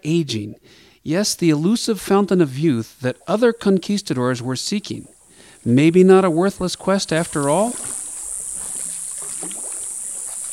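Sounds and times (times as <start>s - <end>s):
speech: 0.0s - 8.0s
high hissing drone of jungle insects: 0.6s - 10.5s
small canoe being paddled along a still stream: 2.1s - 10.5s
wavering tonal calls: 4.9s - 10.5s.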